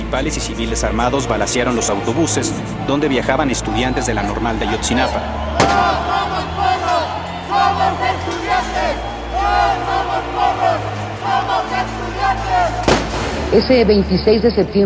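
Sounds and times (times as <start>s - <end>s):
speech: 0.1s - 6.9s, 13.5s - 14.8s
protest crowd chanting: 2.0s - 13.5s.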